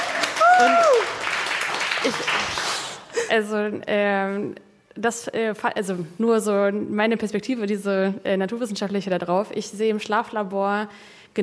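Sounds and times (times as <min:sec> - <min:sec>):
audience applause: 0:00.0 - 0:03.1
speech: 0:02.0 - 0:02.6, 0:03.3 - 0:11.4.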